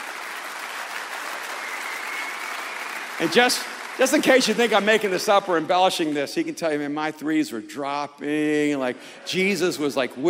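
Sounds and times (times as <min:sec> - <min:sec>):
applause: 0:00.0 - 0:06.6
speech: 0:03.2 - 0:10.2.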